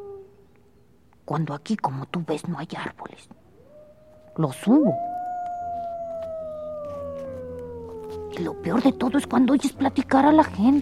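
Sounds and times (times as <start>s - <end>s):
speech: 1.3s - 3.4s, 4.4s - 5.1s, 8.4s - 10.8s
dogs howling: 3.5s - 10.8s.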